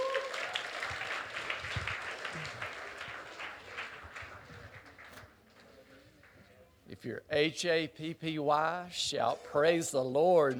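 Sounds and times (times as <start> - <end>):
audience hand clapping: 0.0 - 6.5
speech: 7.0 - 10.5.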